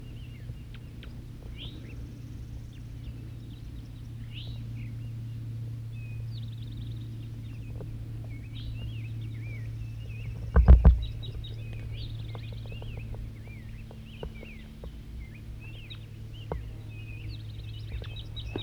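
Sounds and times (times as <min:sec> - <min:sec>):
male wild bird singing: 0:00.0 - 0:18.6.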